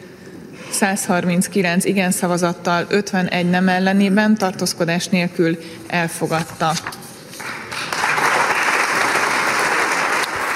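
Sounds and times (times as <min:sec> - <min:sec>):
speech: 0:00.8 - 0:07.0
Hungarian parliament members applauding after a vote: 0:07.4 - 0:10.5.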